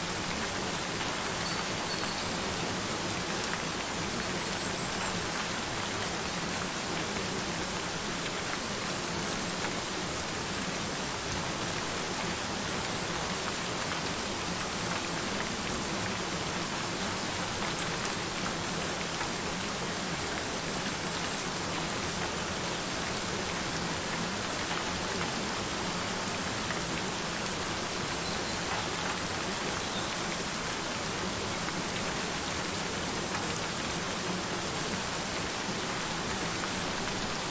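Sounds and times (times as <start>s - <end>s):
rain: 0.0s - 37.4s.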